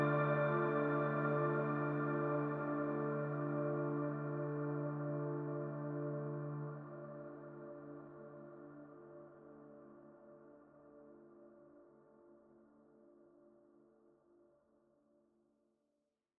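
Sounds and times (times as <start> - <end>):
soft montage music: 0.0 - 12.2.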